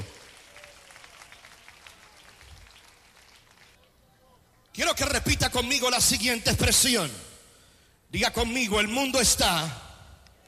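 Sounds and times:
audience applause: 0.0 - 3.8
speech: 4.8 - 7.3, 8.1 - 9.8.

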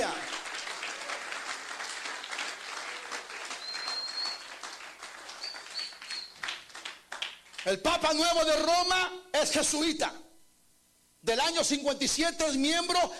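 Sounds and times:
audience clapping: 0.0 - 7.8
speech: 7.6 - 10.2, 11.2 - 13.1.

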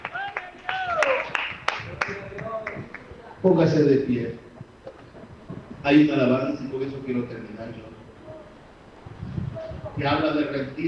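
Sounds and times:
people shouting and cheering: 0.0 - 3.0
audience applause: 0.0 - 3.2
speech: 3.4 - 4.5, 5.8 - 8.0, 10.0 - 10.8.

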